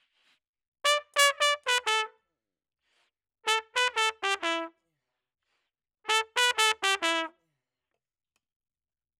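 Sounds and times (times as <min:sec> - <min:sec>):
trumpet: 0:00.8 - 0:02.2, 0:03.5 - 0:04.8, 0:06.1 - 0:07.4.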